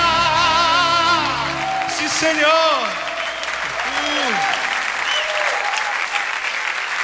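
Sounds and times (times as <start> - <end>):
church congregation applauding during a worship service: 0.0 - 7.0
speech: 2.2 - 3.0
sliding whistle-like tones: 3.0 - 5.6.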